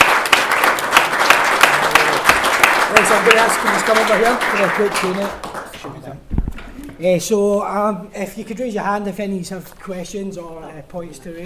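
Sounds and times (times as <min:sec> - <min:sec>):
audience applause for the speakers at the close of a talk: 0:00.0 - 0:05.9
speech: 0:03.1 - 0:06.0, 0:07.0 - 0:11.4.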